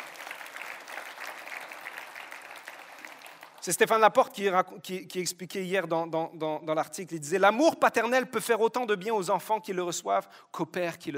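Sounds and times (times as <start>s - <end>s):
audience applauding: 0.0s - 3.8s
speech: 3.6s - 11.1s.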